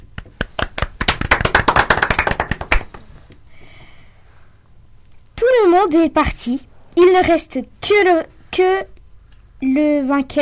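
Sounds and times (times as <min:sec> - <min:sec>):
clapping: 0:00.2 - 0:03.1
speech: 0:05.6 - 0:08.9, 0:09.6 - 0:10.3.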